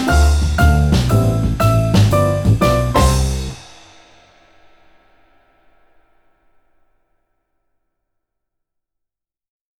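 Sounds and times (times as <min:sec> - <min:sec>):
nursery rhyme instrumental: 0:00.0 - 0:03.9.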